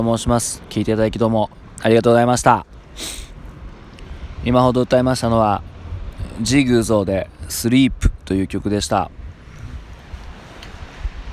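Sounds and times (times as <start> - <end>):
speech: 0.0 - 3.2, 4.4 - 5.7, 6.3 - 9.2
sea waves washing onto a beach: 0.1 - 7.9, 8.5 - 11.3.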